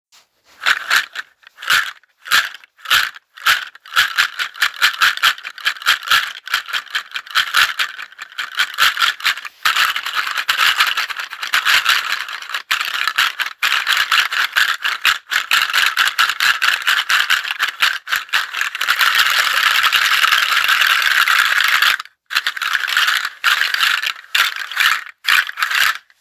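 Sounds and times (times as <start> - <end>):
large juju nut rattle with loop: 0.5 - 26.1.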